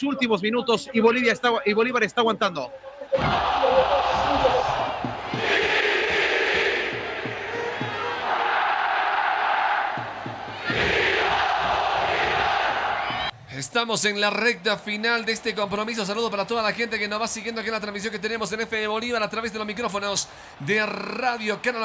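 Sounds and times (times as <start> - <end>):
speech: 0.0 - 4.8, 13.6 - 21.8
football fans chanting in stadium: 3.0 - 13.3.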